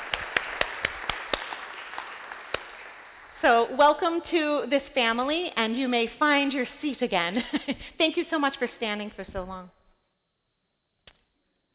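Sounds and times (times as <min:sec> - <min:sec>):
audience applause: 0:00.0 - 0:03.4
speech: 0:03.4 - 0:09.8.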